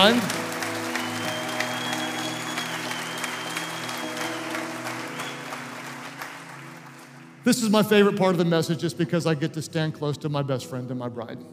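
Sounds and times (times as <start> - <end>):
speech: 0.0 - 0.4, 7.4 - 11.5
audience applause: 0.0 - 7.4.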